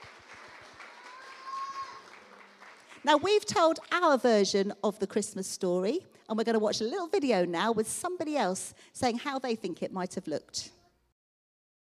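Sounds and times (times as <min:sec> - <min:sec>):
children clapping: 0:00.0 - 0:03.9
speech: 0:03.0 - 0:10.8.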